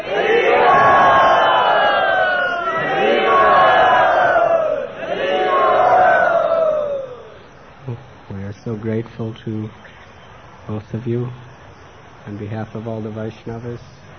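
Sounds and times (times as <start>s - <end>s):
crowd chanting at a Vaishnava gathering: 0.0s - 7.4s
speech: 8.8s - 10.0s, 10.7s - 11.5s, 12.2s - 14.0s.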